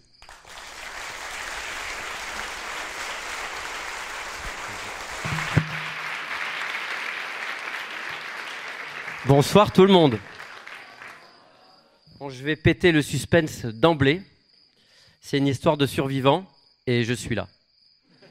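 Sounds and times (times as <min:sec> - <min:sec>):
audience applauding loudly: 0:00.0 - 0:11.5
speech: 0:09.2 - 0:10.3, 0:12.3 - 0:14.3, 0:15.2 - 0:17.6.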